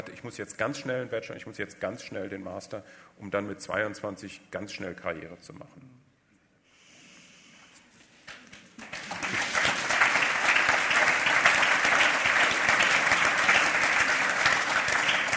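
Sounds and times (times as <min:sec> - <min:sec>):
speech: 0:00.2 - 0:06.0
audience applause: 0:08.8 - 0:15.3.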